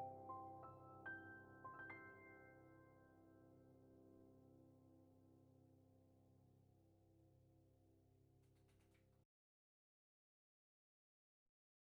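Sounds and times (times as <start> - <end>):
pianist playing piano: 0.0 - 5.5.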